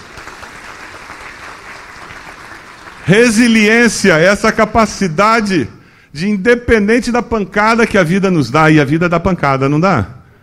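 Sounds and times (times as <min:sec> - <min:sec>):
audience applause: 0:00.0 - 0:03.6
speech: 0:03.1 - 0:10.2.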